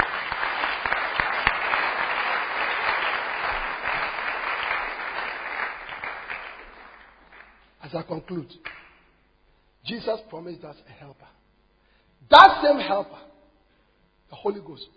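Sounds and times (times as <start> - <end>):
audience clapping hands: 0.0 - 7.8, 8.6 - 9.1
speech: 7.9 - 8.7, 9.9 - 11.4, 12.2 - 13.3, 14.4 - 14.9.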